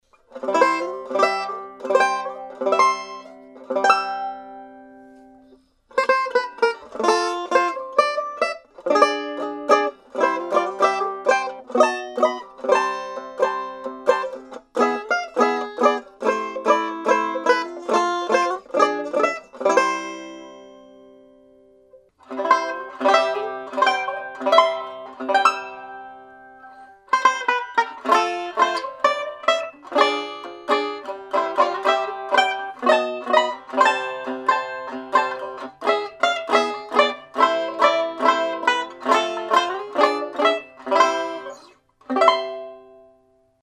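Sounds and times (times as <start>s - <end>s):
Epiphone banjo playing: 0.0s - 43.6s.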